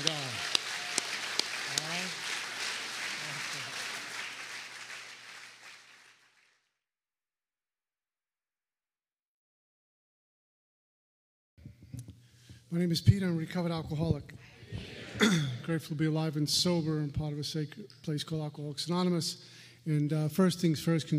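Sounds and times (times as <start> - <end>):
Alcoholics Anonymous meeting audience applauding: 0.0 - 6.6
speech: 12.7 - 21.1.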